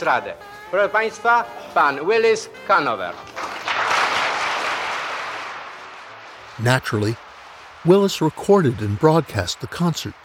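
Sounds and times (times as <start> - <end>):
speech: 0.0 - 3.4, 6.6 - 10.2
crowd applause: 3.3 - 10.2.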